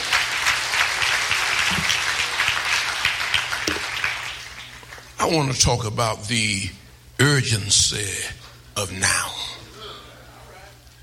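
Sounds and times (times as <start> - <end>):
audience applauding: 0.0 - 5.2
speech: 5.2 - 9.4.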